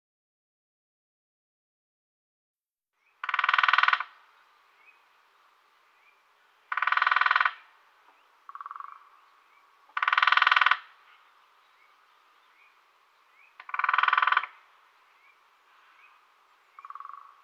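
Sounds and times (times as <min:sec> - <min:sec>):
lesser spotted woodpecker drumming: 0:03.2 - 0:05.0, 0:06.6 - 0:17.4.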